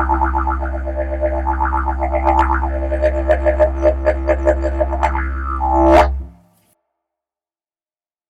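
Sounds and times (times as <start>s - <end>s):
didgeridoo: 0.0s - 6.4s.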